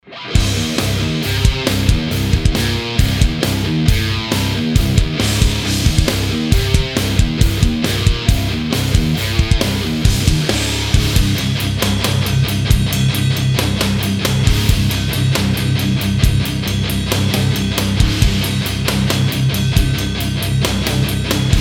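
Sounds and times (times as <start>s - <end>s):
ENGL preamp test guitar: 0.0s - 21.5s.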